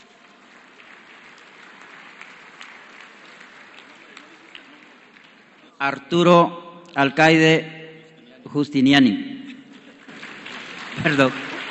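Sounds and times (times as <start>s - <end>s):
audience applause: 0.0s - 5.8s, 9.7s - 11.7s
speech: 5.8s - 7.8s, 8.5s - 9.3s, 11.0s - 11.5s.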